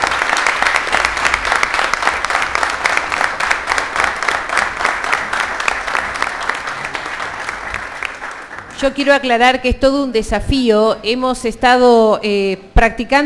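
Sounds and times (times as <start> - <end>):
audience applause: 0.0 - 8.8
speech: 8.8 - 13.2.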